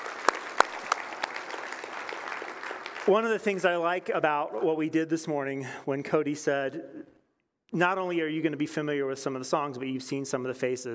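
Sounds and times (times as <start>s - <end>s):
audience applause: 0.0s - 4.1s
speech: 3.1s - 10.9s.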